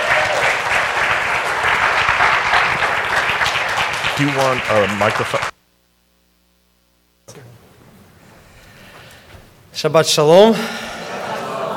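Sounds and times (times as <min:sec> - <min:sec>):
audience applause welcoming a rabbi to the stage: 0:00.0 - 0:05.6
speech: 0:04.2 - 0:05.6, 0:09.8 - 0:10.8
laughter: 0:10.7 - 0:11.7.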